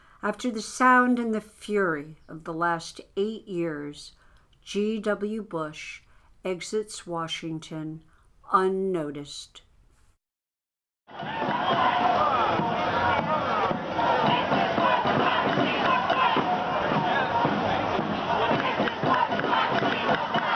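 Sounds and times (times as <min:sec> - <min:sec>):
speech: 0:00.2 - 0:09.6, 0:11.1 - 0:11.7
large crowd chanting and shouting: 0:11.1 - 0:20.5.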